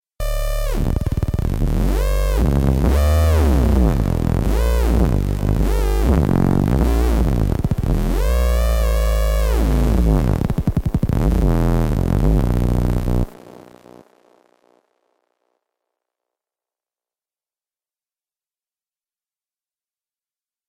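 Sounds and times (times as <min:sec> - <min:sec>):
distorted sound: 0:00.2 - 0:14.8.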